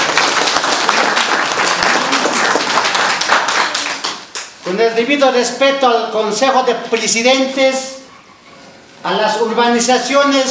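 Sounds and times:
crowd applause at a municipal welcome ceremony: 0.0s - 4.5s
speech: 4.7s - 7.9s, 9.0s - 10.4s.

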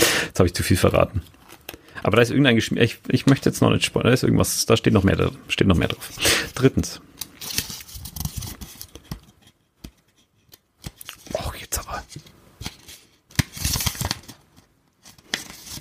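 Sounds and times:
speech: 0.4s - 1.4s, 2.0s - 7.6s
unfolding a twice-folded piece of paper: 6.0s - 9.3s, 12.6s - 15.7s.

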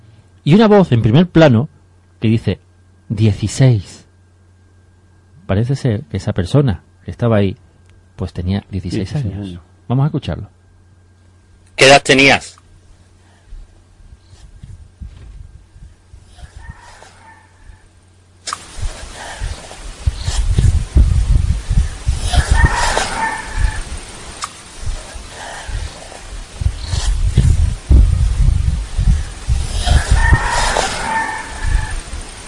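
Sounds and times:
speech: 0.4s - 4.0s, 5.5s - 7.6s, 8.2s - 10.6s, 11.8s - 12.6s
outdoor noise: 4.0s - 32.4s
rooster crowing: 16.4s - 18.0s, 21.8s - 24.2s, 29.2s - 32.4s
low rumbling: 18.7s - 32.4s.

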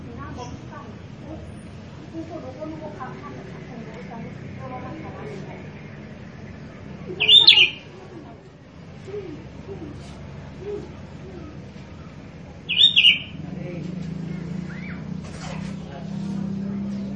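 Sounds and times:
steady hum: 0.0s - 17.1s
sooty-headed bulbul song: 3.5s - 8.2s, 9.0s - 13.4s.

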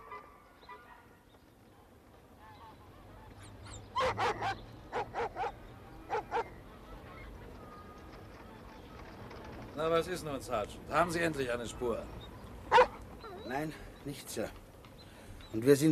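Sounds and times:
search dogs barking: 3.5s - 6.6s, 12.7s - 13.6s
speech: 9.8s - 12.2s, 13.5s - 14.6s, 15.5s - 15.8s.

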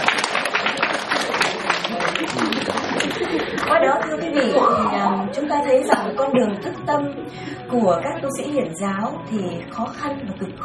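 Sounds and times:
audience applause: 0.0s - 5.3s
laughter: 0.0s - 8.1s
speech: 3.7s - 10.6s.

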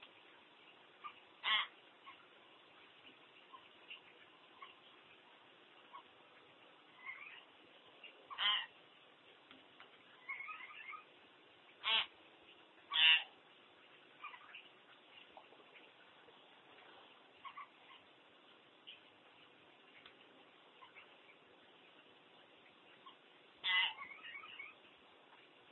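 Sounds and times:
common hill myna squawking: 1.0s - 2.2s, 8.3s - 8.7s, 10.2s - 11.1s, 11.8s - 12.1s, 12.9s - 13.3s, 17.4s - 18.0s, 23.0s - 24.8s.

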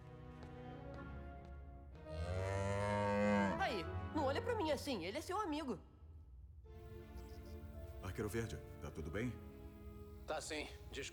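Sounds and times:
cow mooing: 2.1s - 3.7s
speech: 4.4s - 5.9s, 8.1s - 9.5s, 10.3s - 11.1s.

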